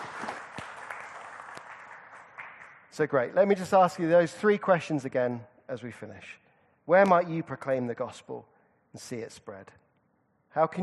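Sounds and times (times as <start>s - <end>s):
audience applause: 0.0s - 2.8s
speech: 3.0s - 9.8s, 10.6s - 10.8s.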